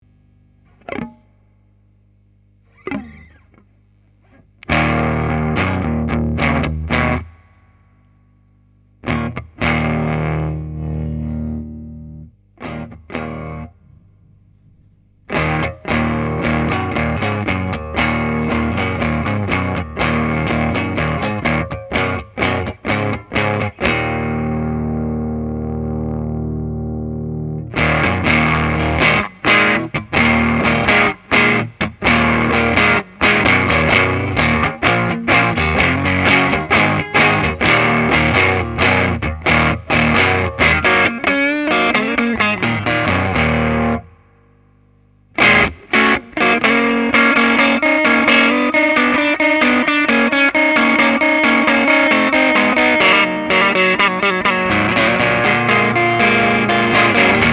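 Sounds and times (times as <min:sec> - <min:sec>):
blues music: 0:00.6 - 0:01.5, 0:02.5 - 0:57.5.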